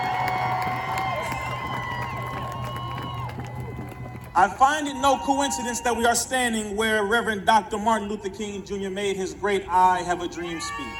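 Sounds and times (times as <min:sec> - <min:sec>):
crowd cheering and clapping: 0:00.0 - 0:06.2
speech: 0:04.4 - 0:10.9.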